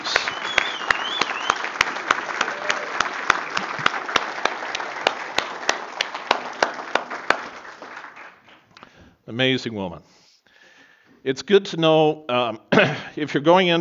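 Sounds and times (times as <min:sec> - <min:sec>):
audience applauding: 0:00.0 - 0:08.7
speech: 0:09.4 - 0:10.2, 0:11.2 - 0:13.7.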